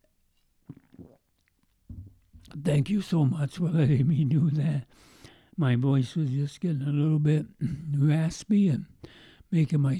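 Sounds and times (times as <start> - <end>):
person sipping a soda drink: 0.6 - 2.5
speech: 2.5 - 9.9.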